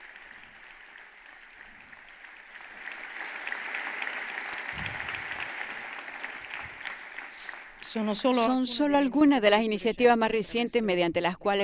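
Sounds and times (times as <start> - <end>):
audience applauding: 0.0 - 8.3
speech: 7.9 - 11.6.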